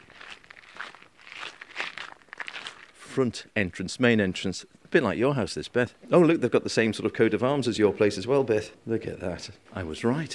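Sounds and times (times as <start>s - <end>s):
footsteps crunching on gravel: 0.0s - 3.0s
speech: 3.2s - 10.3s.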